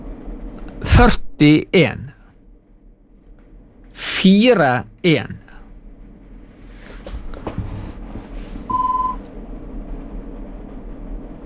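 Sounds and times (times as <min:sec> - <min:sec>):
speech: 0:00.8 - 0:02.1, 0:04.0 - 0:05.4
single telephone ring electronic beep: 0:08.7 - 0:09.2.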